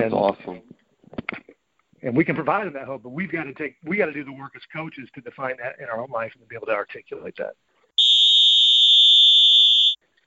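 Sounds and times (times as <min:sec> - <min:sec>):
speech: 0:00.0 - 0:00.7, 0:02.0 - 0:07.7
shrill whistle blast: 0:08.0 - 0:10.0.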